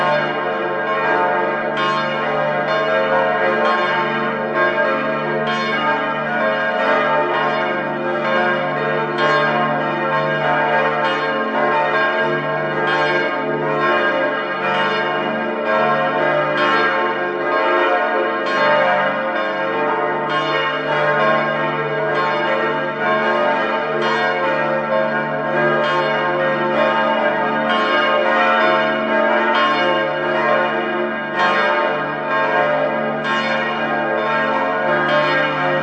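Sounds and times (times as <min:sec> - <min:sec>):
bells ringing together: 0:00.0 - 0:35.8.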